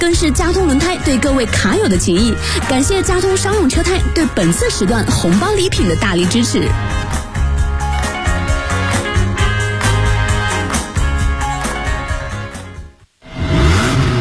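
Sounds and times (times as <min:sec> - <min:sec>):
speech: 0:00.0 - 0:07.2
beat-heavy music jingle: 0:00.0 - 0:12.6
car engine revving: 0:13.2 - 0:14.1.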